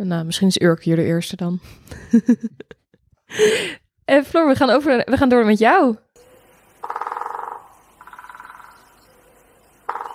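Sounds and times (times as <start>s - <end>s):
speech: 0.0s - 6.0s
laughter: 1.9s - 3.0s
great spotted woodpecker drumming: 6.2s - 10.1s.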